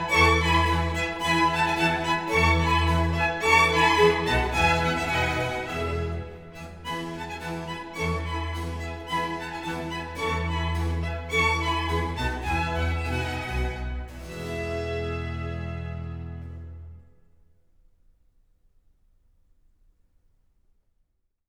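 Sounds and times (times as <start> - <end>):
violin concerto in E major: 0.0 - 17.0.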